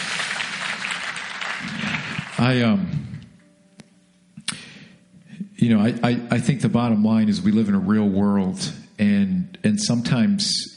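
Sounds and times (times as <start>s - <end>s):
audience applause: 0.0s - 2.5s
speech: 2.4s - 3.0s, 5.7s - 10.7s.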